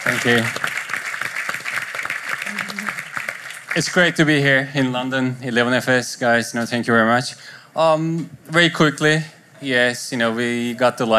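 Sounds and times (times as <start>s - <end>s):
speech: 0.0s - 0.7s, 3.7s - 11.1s
conference audience applause in London: 0.0s - 4.3s.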